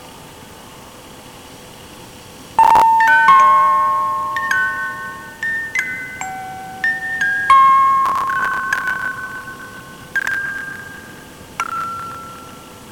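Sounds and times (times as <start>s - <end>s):
dying music box: 2.6s - 12.9s.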